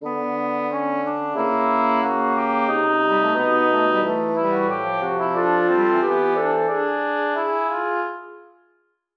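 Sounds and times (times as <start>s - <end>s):
fugato music: 0.0s - 8.6s.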